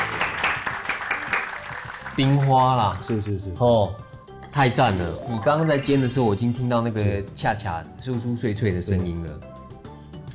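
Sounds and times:
audience applause: 0.0s - 2.5s
speech: 2.2s - 4.0s, 4.6s - 9.6s.

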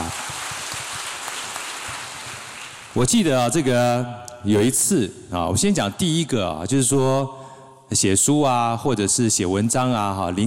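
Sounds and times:
audience applause after a question at a writer's talk: 0.0s - 3.0s
speech: 3.0s - 10.4s.

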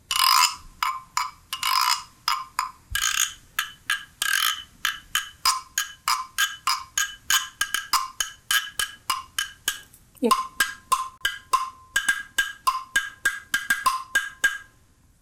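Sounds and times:
double-headed wooden fish percussion instrument: 0.0s - 14.8s.

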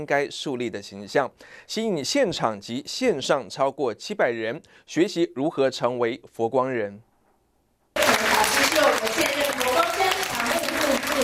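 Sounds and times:
speech: 0.0s - 7.1s
audience applauding a speaker's arrival: 8.0s - 11.2s.

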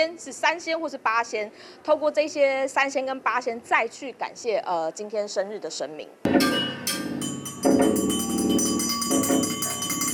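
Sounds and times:
speech: 0.0s - 6.8s
spoon striking iron lunchbox like a gong: 6.3s - 10.1s.

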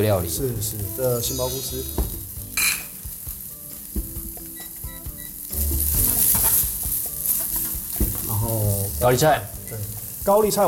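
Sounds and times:
speech: 0.0s - 2.2s, 8.5s - 10.6s
fried rice with vegetables sizzling in a wok: 0.0s - 10.6s
metal spatula scraping and clacking against a wok: 5.8s - 9.0s.

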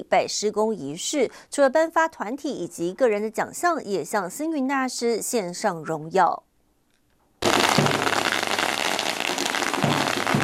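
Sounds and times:
speech: 0.0s - 6.5s
long string of firecrackers crackling: 7.4s - 10.4s.

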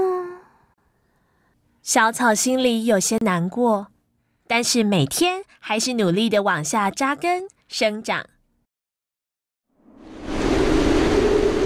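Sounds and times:
speech: 1.9s - 3.9s, 4.5s - 8.3s
howling typhoon wind: 9.8s - 11.6s.

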